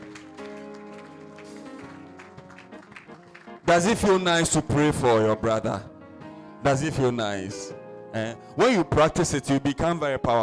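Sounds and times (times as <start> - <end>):
audience clapping hands: 0.0 - 4.4
speech: 3.7 - 5.9, 6.6 - 10.4.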